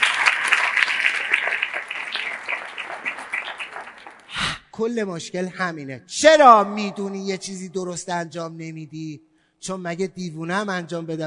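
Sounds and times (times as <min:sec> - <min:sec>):
audience at a self-esteem talk clapping for themselves: 0:00.0 - 0:04.4
speech: 0:04.8 - 0:11.2.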